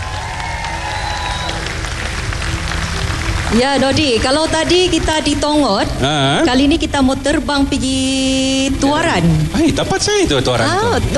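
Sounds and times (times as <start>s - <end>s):
loud sustained applause from a large crowd: 0.0s - 6.2s
speech: 3.5s - 11.1s.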